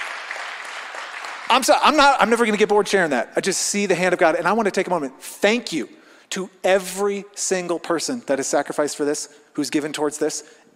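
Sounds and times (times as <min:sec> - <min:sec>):
audience clapping: 0:00.0 - 0:03.0
speech: 0:01.5 - 0:10.7.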